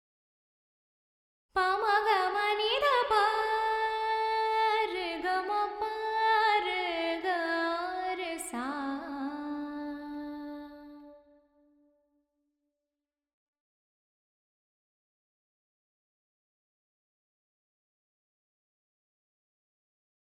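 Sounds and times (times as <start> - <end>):
woman singing with reverb in D: 1.6 - 11.2.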